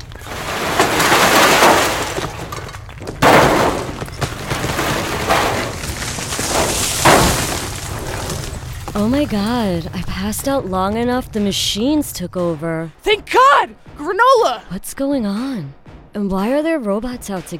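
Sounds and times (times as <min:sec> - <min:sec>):
giant Venus flytrap bursting up through a floor, crashing and shattering: 0:00.0 - 0:10.5
speech: 0:09.0 - 0:17.5.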